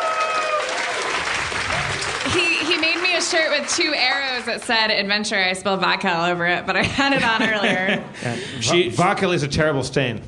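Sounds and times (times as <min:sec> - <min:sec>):
faint voices cheering: 0:00.0 - 0:02.7
audience applause: 0:00.0 - 0:04.9
laughter: 0:02.2 - 0:03.2, 0:06.8 - 0:08.8
speech: 0:02.3 - 0:10.2.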